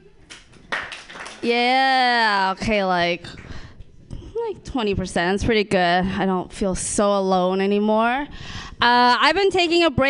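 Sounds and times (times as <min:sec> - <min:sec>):
scattered audience clapping: 0:00.2 - 0:01.8
speech: 0:01.4 - 0:03.4, 0:04.5 - 0:10.0.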